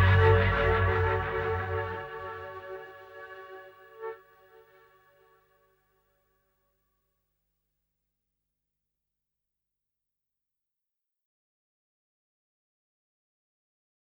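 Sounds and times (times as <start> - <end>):
instrumental music: 0.0 - 5.6.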